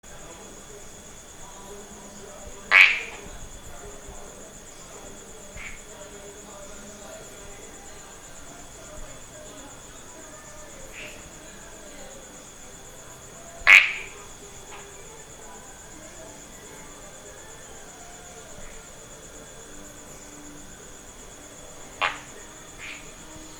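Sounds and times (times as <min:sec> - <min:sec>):
common tree frog Polypedates leucomystax giving harsh quacking croaks: 0:00.0 - 0:23.5.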